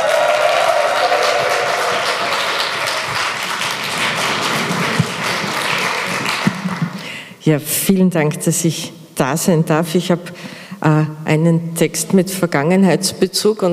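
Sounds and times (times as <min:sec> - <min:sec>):
audience applause: 0:00.0 - 0:07.1
speech: 0:07.4 - 0:13.7.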